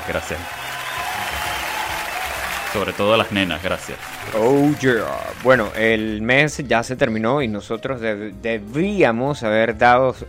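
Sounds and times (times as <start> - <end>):
audience applause: 0.0 - 6.1
speech: 0.1 - 0.7, 2.7 - 10.2.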